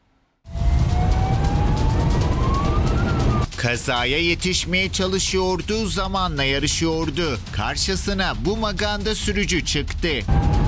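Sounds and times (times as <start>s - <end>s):
fire engine siren wailing on its way to an accident: 0.5s - 3.5s, 10.3s - 10.6s
speech: 3.6s - 10.6s.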